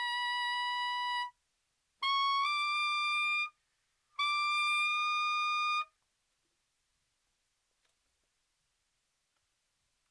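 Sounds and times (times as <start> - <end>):
B-flat tenor saxophone overtones: 0.0 - 1.4, 2.0 - 3.6, 4.2 - 6.0.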